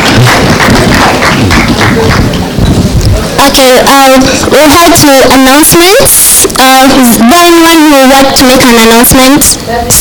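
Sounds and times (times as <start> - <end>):
audience hand clapping: 0.0 - 2.4
speech: 3.6 - 10.0.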